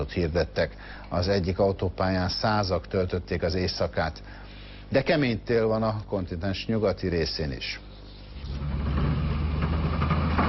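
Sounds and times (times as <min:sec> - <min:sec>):
speech: 0:00.0 - 0:08.8
snowplow engine clearing deep snow in southern Romania: 0:08.4 - 0:10.4.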